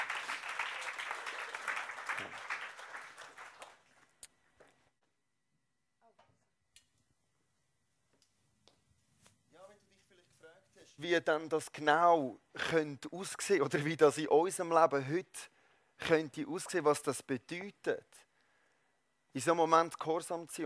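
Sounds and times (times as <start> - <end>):
audience applause: 0.0 - 4.1
speech: 11.0 - 18.2, 19.4 - 20.6.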